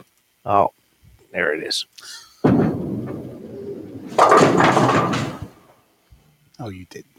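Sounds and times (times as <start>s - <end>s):
speech: 0.5s - 0.8s, 1.3s - 3.2s, 4.2s - 5.3s, 6.6s - 7.1s
bowling pins getting knocked over: 2.4s - 5.8s.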